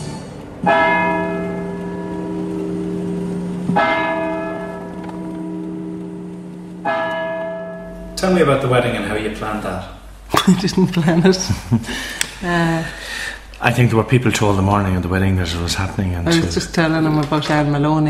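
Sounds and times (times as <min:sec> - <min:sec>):
church bell ringing: 0:00.6 - 0:10.0
speech: 0:08.2 - 0:18.0
laughter: 0:10.3 - 0:12.4.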